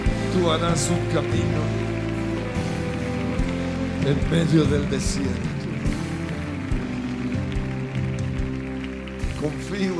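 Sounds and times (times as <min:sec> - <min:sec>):
audience applause: 0:00.0 - 0:09.9
speech: 0:00.4 - 0:01.9, 0:04.0 - 0:06.0, 0:09.4 - 0:09.9.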